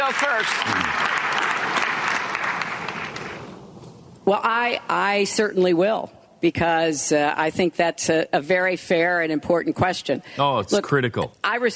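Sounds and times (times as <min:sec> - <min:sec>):
audience applause: 0:00.0 - 0:03.5
speech: 0:00.1 - 0:01.2, 0:04.3 - 0:11.7.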